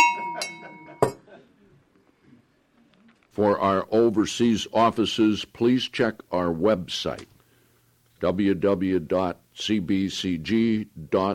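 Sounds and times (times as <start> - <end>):
bell ringing: 0.0 - 1.2
speech: 3.4 - 7.3, 8.2 - 11.3.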